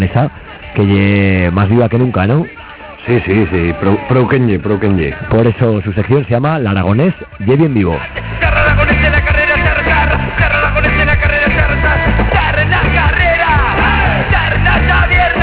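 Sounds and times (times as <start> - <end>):
speech: 0.0 - 9.4
concert audience yelling and cheering at a concert: 2.5 - 5.5, 8.5 - 15.4.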